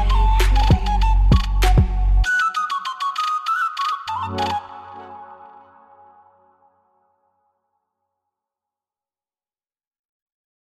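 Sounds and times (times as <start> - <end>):
Ukrainian vesnianka trap instrumental: 0.0 - 6.2.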